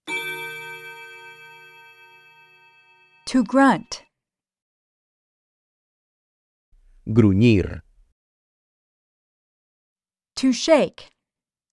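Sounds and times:
chime before dialogue excerpt: 0.0s - 3.6s
speech: 3.3s - 4.0s, 7.1s - 7.8s, 10.4s - 11.1s.

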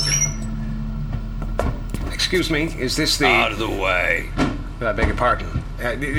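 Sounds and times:
small decrepit motor coach rattling: 0.1s - 4.1s
speech: 2.3s - 6.1s.

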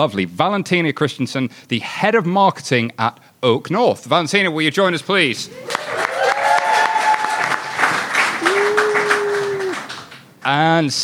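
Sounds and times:
speech: 0.0s - 6.0s, 10.5s - 11.0s
audience applause for guest: 5.6s - 10.2s.

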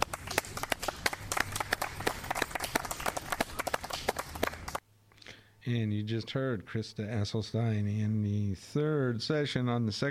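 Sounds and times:
audience applause after a poetry reading: 0.0s - 4.8s
speech: 5.7s - 10.0s.

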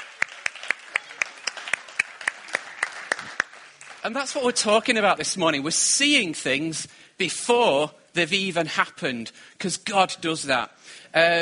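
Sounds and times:
rhythmic audience applause: 0.0s - 5.0s
speech: 4.0s - 11.4s.

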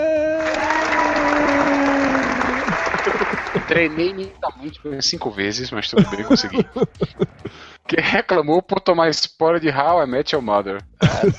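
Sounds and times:
played-back recording of applause: 0.0s - 4.4s
laughter: 0.4s - 4.7s, 5.7s - 8.2s, 11.0s - 11.3s
speech: 3.7s - 11.3s.

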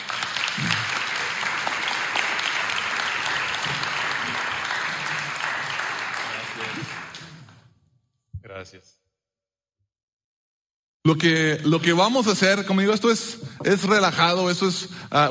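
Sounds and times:
crowd applause: 0.0s - 7.6s
speech: 11.1s - 15.3s.

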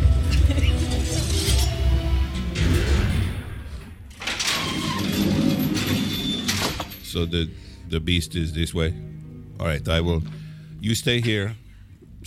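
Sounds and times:
elevator doors closing: 0.6s - 7.0s
speech: 7.2s - 11.6s.

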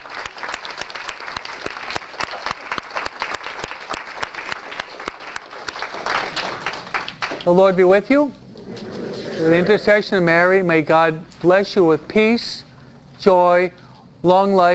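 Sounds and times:
audience applause: 0.0s - 7.6s
speech: 7.4s - 8.4s, 9.4s - 12.6s, 13.2s - 14.7s.

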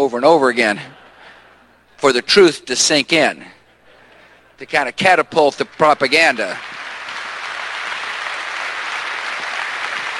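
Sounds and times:
speech: 0.0s - 1.0s, 2.0s - 3.6s, 4.6s - 6.8s
applause: 5.7s - 10.1s.

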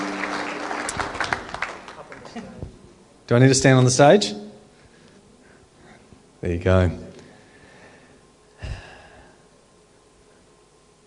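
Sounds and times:
church congregation clapping to welcome visitors: 0.0s - 2.6s
speech: 1.0s - 1.2s, 2.4s - 2.6s, 3.3s - 4.4s, 6.4s - 7.0s.

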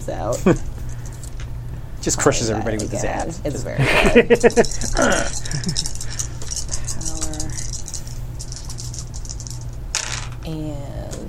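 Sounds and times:
speech: 0.0s - 0.8s, 2.0s - 6.1s, 10.5s - 11.2s
laughter: 3.8s - 6.2s
pile of dice rattling: 4.4s - 10.4s.

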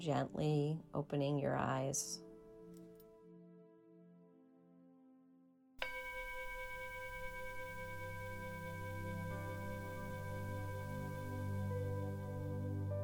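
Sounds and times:
speech: 0.0s - 2.3s
meditation bell ringing: 5.8s - 12.9s.

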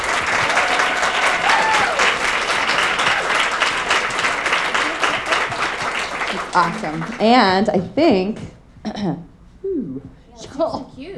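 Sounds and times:
audience applause: 0.0s - 7.4s
speech: 6.6s - 11.1s.

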